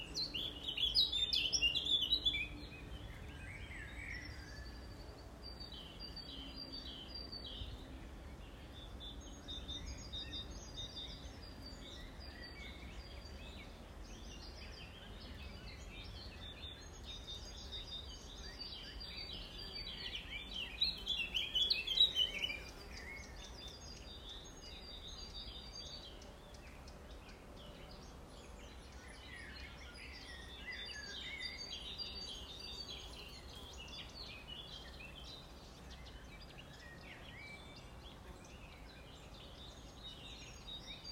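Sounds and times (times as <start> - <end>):
birds chirping: 0.0 - 41.1.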